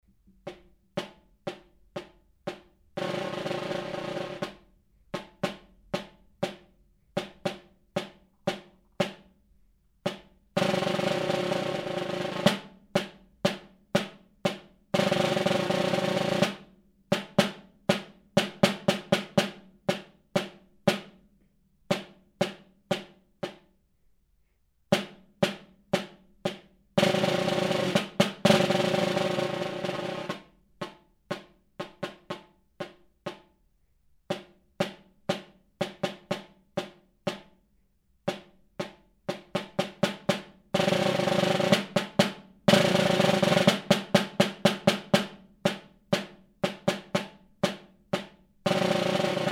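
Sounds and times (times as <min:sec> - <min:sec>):
snare drum: 0:00.2 - 0:09.4, 0:10.0 - 0:21.3, 0:21.9 - 0:23.8, 0:24.9 - 0:33.6, 0:34.3 - 0:37.6, 0:38.3 - 0:49.5.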